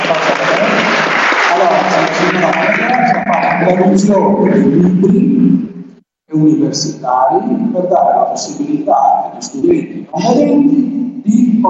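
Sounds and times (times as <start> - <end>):
applause for a staff member at an institute translating textbooks for blind students: 0.0 - 4.6
speech: 2.4 - 11.6.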